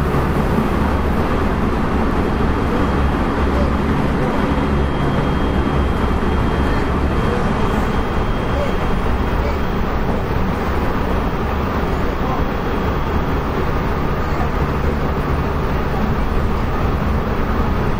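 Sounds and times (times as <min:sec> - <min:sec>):
Kobe Line special rapid train running noise: 0:00.0 - 0:17.9.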